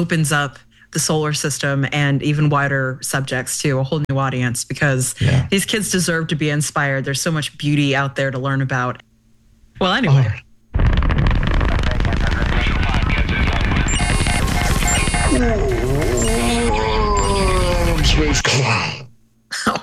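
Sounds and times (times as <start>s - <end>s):
speech: 0.0s - 9.1s, 9.8s - 10.4s, 15.4s - 15.6s
space probe crashing into the moon: 10.8s - 18.5s.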